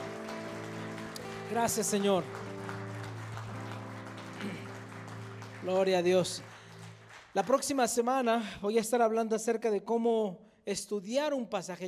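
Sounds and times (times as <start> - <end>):
audience applause: 0.0 - 8.3
speech: 1.5 - 2.5, 5.6 - 6.5, 7.4 - 11.8.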